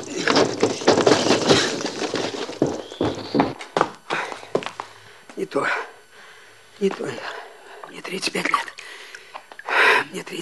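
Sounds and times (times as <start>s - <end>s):
running footsteps into a house: 0.0s - 5.0s
speech: 5.5s - 5.9s, 6.8s - 7.4s, 8.0s - 8.7s, 10.1s - 10.4s.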